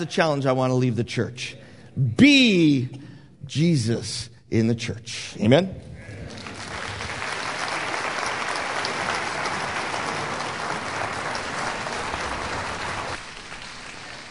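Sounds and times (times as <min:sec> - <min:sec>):
speech: 0:00.0 - 0:05.9
audience applause: 0:06.2 - 0:14.2.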